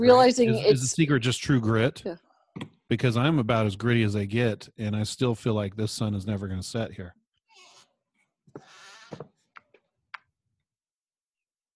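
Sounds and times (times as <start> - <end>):
speech: 0.0 - 7.2
squeaky chair creaking: 7.5 - 8.0, 8.6 - 9.4.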